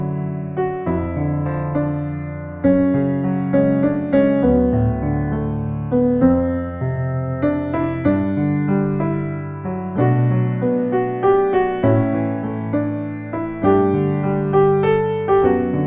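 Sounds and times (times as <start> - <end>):
piano sketch: 0.0 - 15.8.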